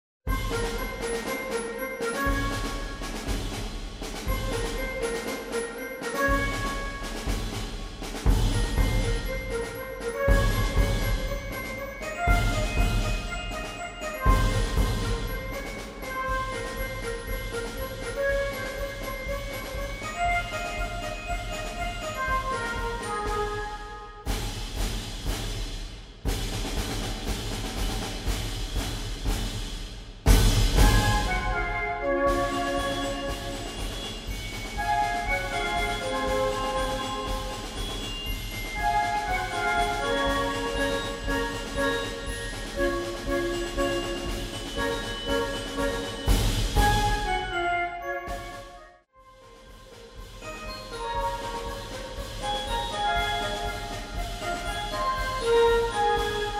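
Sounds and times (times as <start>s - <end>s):
marching band playing: 0.3s - 56.5s.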